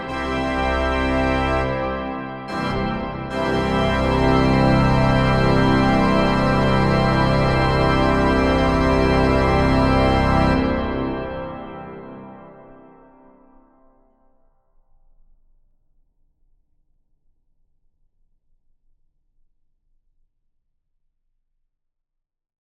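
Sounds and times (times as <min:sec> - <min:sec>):
easy organ fanfare: 0:00.0 - 0:13.1.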